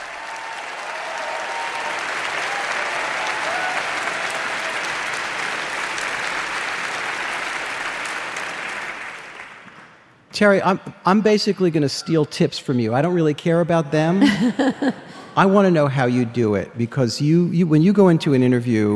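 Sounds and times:
large crowd applauding welcoming a guest: 0.0s - 10.2s
speech: 10.4s - 18.9s
laughter: 14.0s - 15.8s.

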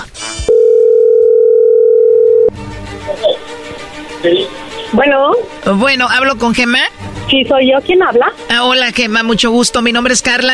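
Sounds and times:
telephone dial tone while placing a call: 0.5s - 2.5s
speech: 4.2s - 10.5s.

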